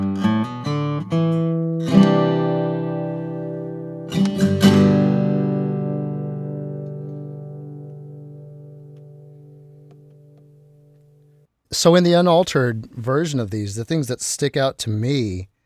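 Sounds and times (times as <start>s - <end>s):
acoustic guitar recorded with SM57 microphone: 0.0s - 11.9s
speech: 11.8s - 15.5s.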